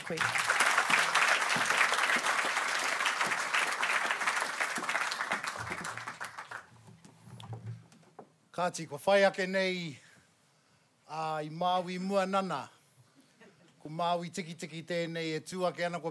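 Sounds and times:
audience applause welcoming a speaker at a lecture event: 0.0 - 6.7
speech: 0.1 - 0.5, 8.6 - 10.0, 11.1 - 12.8, 13.8 - 16.0.

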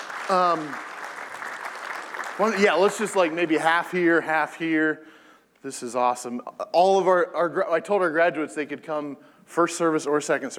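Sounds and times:
audience clapping for graduates: 0.0 - 3.9
speech: 0.3 - 0.9, 2.4 - 10.5.

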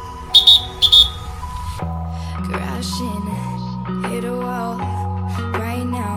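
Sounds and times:
inadvertent whistle: 0.0 - 1.4
speech: 1.8 - 6.0.

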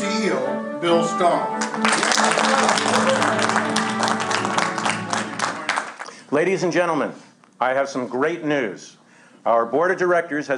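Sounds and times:
speech: 0.2 - 4.2, 6.3 - 10.5
audience applause in film scene: 1.6 - 6.2.

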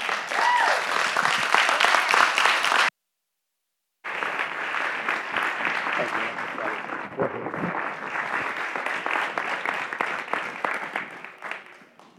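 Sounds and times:
audience clapping: 0.0 - 2.9, 4.0 - 12.1.

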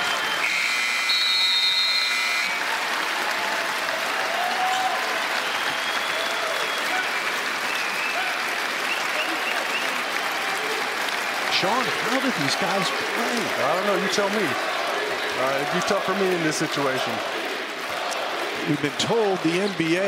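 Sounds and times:
arena crowd clapping and cheering: 0.0 - 20.0
buzzer tone: 0.4 - 2.6
speech: 11.6 - 14.8, 15.4 - 17.4, 18.6 - 20.0.

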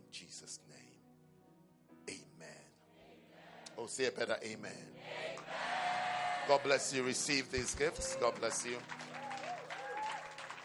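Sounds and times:
speech: 3.8 - 5.6, 6.4 - 9.2
audience applause: 7.7 - 10.6.

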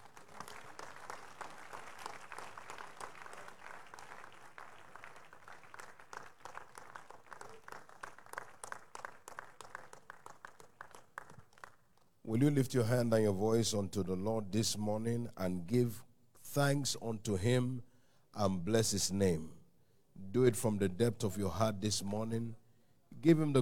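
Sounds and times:
audience clapping hands in praise: 0.0 - 12.2
speech: 12.3 - 19.6, 20.3 - 22.6, 23.2 - 23.5.

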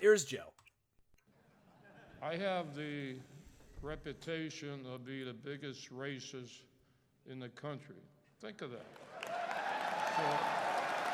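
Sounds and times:
speech: 0.0 - 0.6, 2.2 - 9.6, 10.2 - 10.8
audience cheering at a rally: 9.0 - 11.1.

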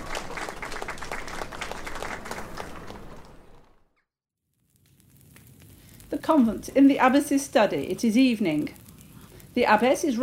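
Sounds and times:
villagers clapping appreciatively: 0.0 - 3.9
speech: 6.2 - 8.8, 9.6 - 10.2.

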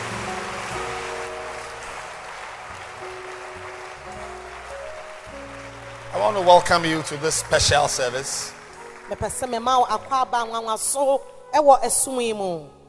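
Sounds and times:
audience clapping hands: 0.0 - 10.4
speech: 6.2 - 12.8.

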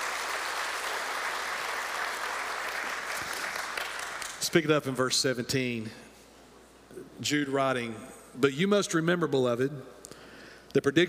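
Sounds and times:
audience applause: 0.0 - 4.4
speech: 4.5 - 6.0, 7.2 - 10.0, 10.8 - 11.0.

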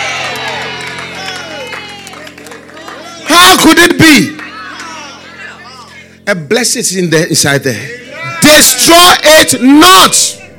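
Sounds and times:
audience clapping: 0.0 - 5.1
crowd whooping and excited voices: 0.0 - 6.0, 8.0 - 10.5
speech: 3.5 - 4.3, 6.3 - 10.4.

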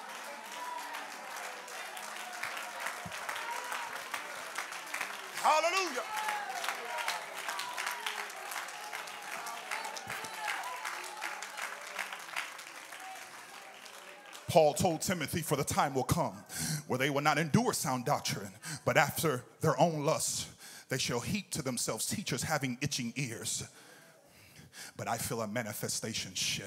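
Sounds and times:
audience clapping: 0.0 - 15.9
speech: 5.4 - 6.2, 14.5 - 23.9, 25.0 - 26.6.

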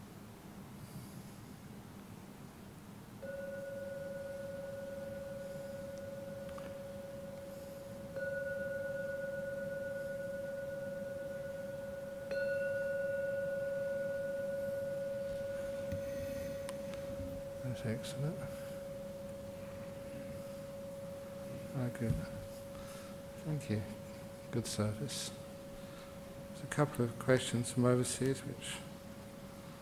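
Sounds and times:
gong struck: 3.2 - 28.8
low hum: 3.2 - 29.7
speech: 17.8 - 18.6, 22.0 - 22.4, 23.4 - 25.4, 26.6 - 28.9.

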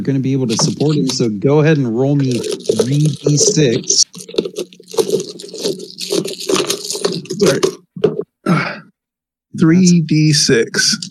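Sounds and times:
speech: 0.0 - 4.7, 7.4 - 7.8, 9.6 - 11.0
something stuffed into a plastic trash bag: 0.5 - 1.2, 2.1 - 7.9.

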